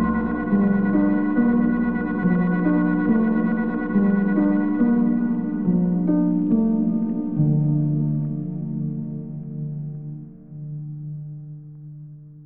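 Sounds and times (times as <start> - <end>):
dark ambient melody: 0.0 - 11.8.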